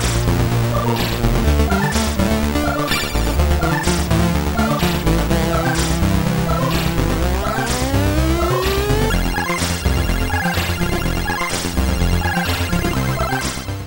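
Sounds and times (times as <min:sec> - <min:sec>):
C64 home computer sound chip on real hardware: 0:00.7 - 0:13.7.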